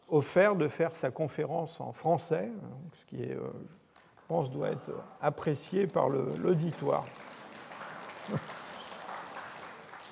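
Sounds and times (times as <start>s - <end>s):
speech: 0.1s - 7.3s, 8.3s - 8.5s
audience starting to applaud: 5.6s - 10.1s.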